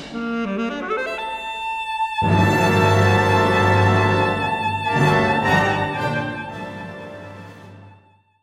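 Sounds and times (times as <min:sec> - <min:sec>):
alto saxophone: 0:00.1 - 0:08.2
wind orchestra: 0:00.1 - 0:08.2.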